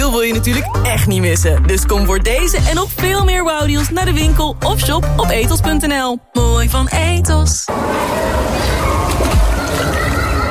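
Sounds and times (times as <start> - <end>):
speech: 0.2 - 9.5
sloshing water: 7.7 - 10.4
splash of a boy diving into water: 7.8 - 10.4.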